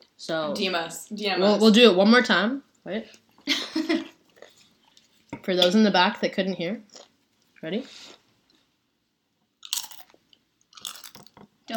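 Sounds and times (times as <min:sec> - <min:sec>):
speech: 0:00.2 - 0:04.0, 0:05.5 - 0:08.2
crunching a chip: 0:09.6 - 0:11.3.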